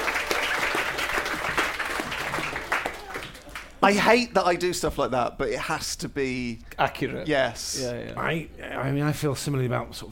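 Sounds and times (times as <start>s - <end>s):
round of applause: 0.0s - 3.8s
speech: 3.8s - 10.0s.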